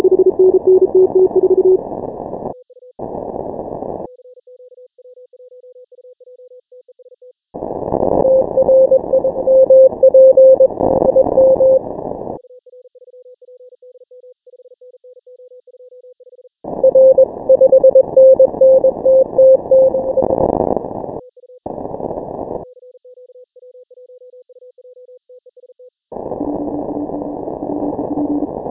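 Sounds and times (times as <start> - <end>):
morse code beeps: 0.0 - 1.8, 8.2 - 11.8, 16.8 - 20.4, 26.4 - 28.6.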